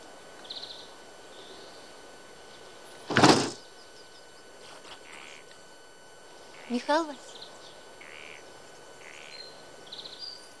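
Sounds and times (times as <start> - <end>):
faint bird chirps: 0.4 - 2.0, 3.5 - 5.5, 6.4 - 10.5
closed door rattling as someone tries it: 3.1 - 3.6
speech: 6.7 - 7.3.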